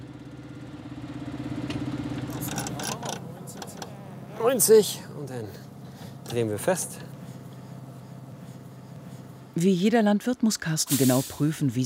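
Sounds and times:
tractor engine idling: 0.0 - 11.8
speech: 4.4 - 5.6, 6.3 - 7.1, 9.6 - 11.8
hissing rattling bursts: 10.9 - 11.4.

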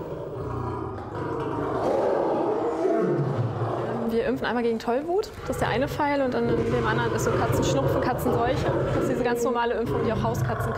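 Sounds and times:
lions roaring: 0.0 - 4.2, 5.3 - 10.7
speech: 4.3 - 10.7.

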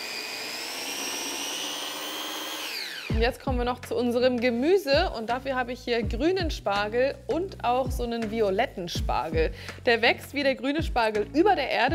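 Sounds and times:
blender puréeing blanched spinach: 0.0 - 3.2
speech: 3.1 - 11.9.

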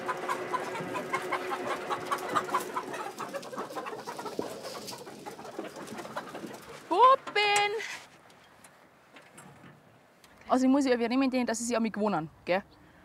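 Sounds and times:
chickens clucking: 0.0 - 7.8
faint outdoor background: 0.0 - 13.0
speech: 10.5 - 12.8.

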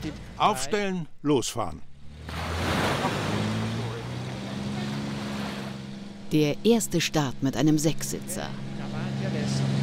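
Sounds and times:
speech: 0.1 - 1.9, 6.3 - 9.7
waves from a passing ferry: 2.2 - 6.2.

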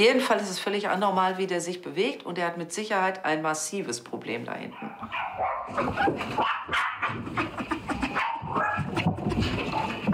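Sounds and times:
speech: 0.0 - 7.8
dog barking and whimpering hysterically: 4.7 - 10.1.

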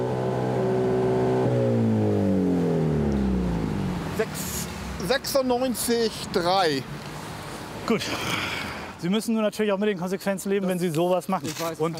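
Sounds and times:
car engine revving with exhaust flap open: 0.0 - 5.4
speech: 4.2 - 7.0, 7.9 - 11.9.

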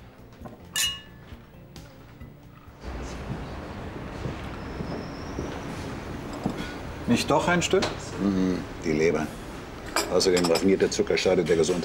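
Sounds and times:
glasses clinking in a toast: 0.6 - 1.4, 9.9 - 11.0
speech: 7.1 - 9.4, 10.1 - 11.8.

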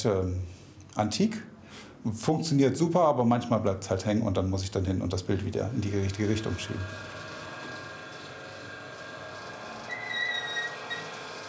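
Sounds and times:
hiss: 0.0 - 6.9
speech: 0.0 - 7.2
squeaking mechanism: 5.9 - 11.4.

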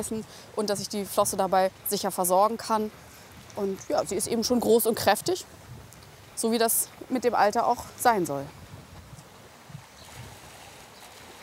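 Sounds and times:
speech: 0.0 - 5.7, 6.4 - 8.6
water let into a seal release pool: 10.0 - 11.4.

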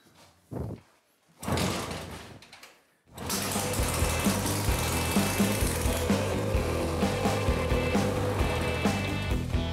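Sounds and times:
70-year-old motorcycle engine starting and running: 3.1 - 9.4.

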